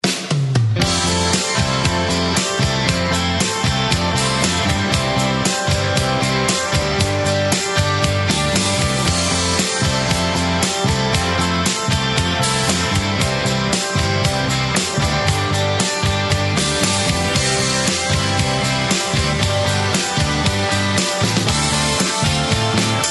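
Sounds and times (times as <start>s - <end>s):
country music: 0.8s - 23.0s.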